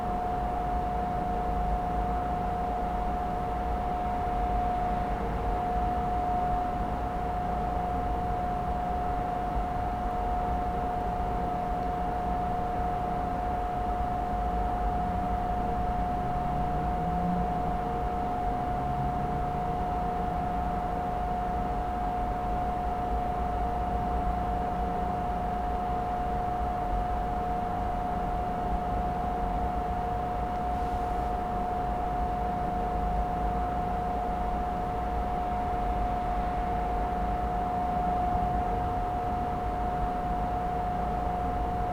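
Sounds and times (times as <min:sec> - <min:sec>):
industrial ventilation in an empty train station at night: 0:00.0 - 0:41.9.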